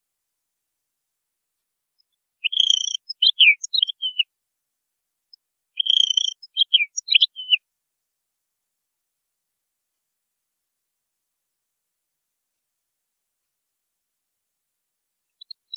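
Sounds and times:
European goldfinch twitter: 2.4 - 4.2, 5.8 - 7.6.

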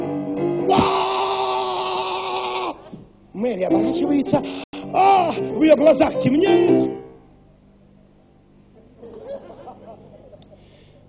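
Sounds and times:
voice imitating an inhuman scream from the thickets: 0.7 - 3.0, 4.9 - 5.4
speech: 3.4 - 7.0
laughter: 8.7 - 10.8.

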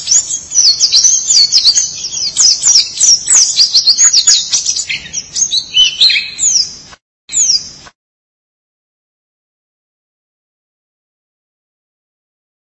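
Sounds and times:
white-eye twittering song: 0.0 - 7.8.

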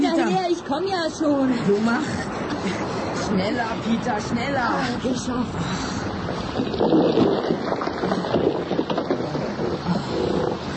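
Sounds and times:
speech: 0.7 - 7.5
tree trunk ramming a boat: 6.2 - 10.7.

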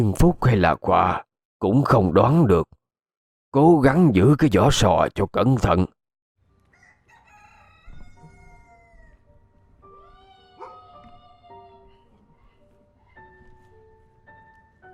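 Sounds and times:
speech: 0.0 - 2.8, 3.5 - 6.0
rooster crowing behind a house at dawn: 6.6 - 9.4, 10.0 - 11.8.

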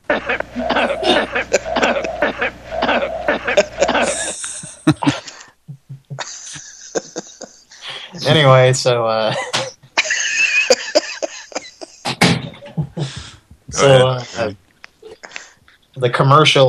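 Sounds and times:
laughter: 0.0 - 14.5
speech: 0.1 - 3.1, 8.3 - 9.5, 13.8 - 14.6, 16.0 - 16.6
person coughing: 0.1 - 5.4, 10.7 - 12.0.

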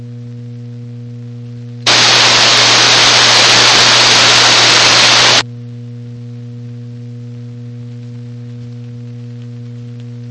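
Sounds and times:
open radio carrier noise: 1.9 - 5.4.

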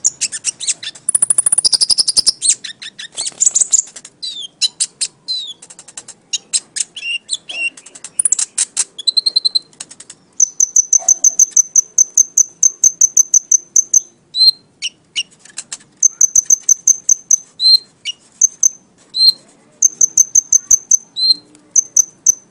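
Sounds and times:
Oriental magpie-robin giving high chips and whistles: 0.0 - 22.5.

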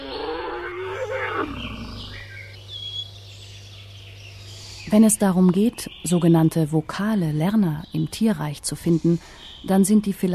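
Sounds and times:
elephant vocalizations: 0.0 - 2.5
speech: 4.9 - 10.3.

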